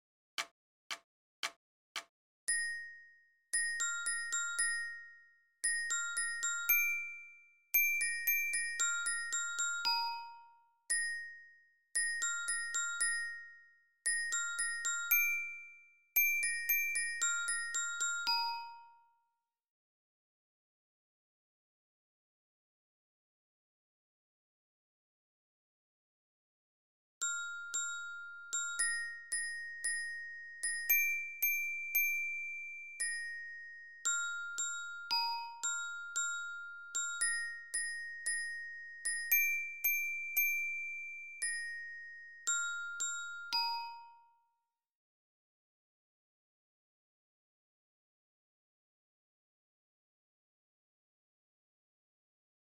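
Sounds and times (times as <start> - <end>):
lyra glockenspiel of a Spielmannszug marching band: 2.5 - 19.5, 27.2 - 44.7.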